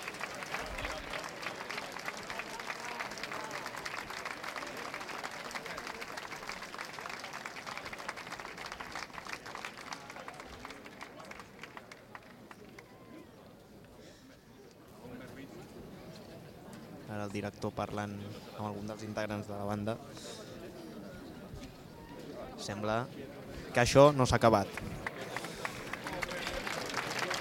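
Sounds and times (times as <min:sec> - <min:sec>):
concert audience ovation at the end of the show: 0:00.0 - 0:13.2, 0:24.3 - 0:27.3
concert crowd noise: 0:00.0 - 0:27.3
speech: 0:17.3 - 0:20.4, 0:22.6 - 0:25.0.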